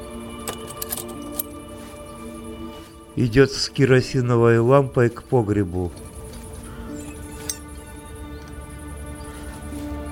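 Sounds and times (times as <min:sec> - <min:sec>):
ring of keys hanging on a post jangling: 0:00.4 - 0:01.6
speech: 0:03.2 - 0:06.0.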